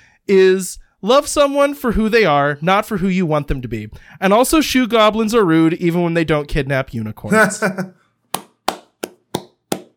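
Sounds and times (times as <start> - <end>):
speech: 0.3 - 8.0
hand clapping: 8.4 - 9.9.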